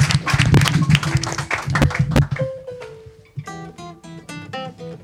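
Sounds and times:
audience applause: 0:00.0 - 0:02.5.

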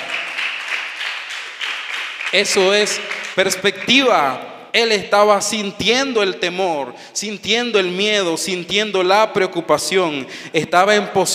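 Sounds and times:
audience applause: 0:00.0 - 0:03.6
speech: 0:02.3 - 0:11.3.

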